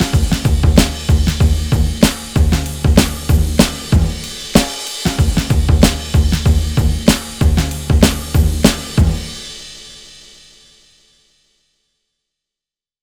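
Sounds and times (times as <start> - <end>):
drum breaks: 0.0 - 10.3.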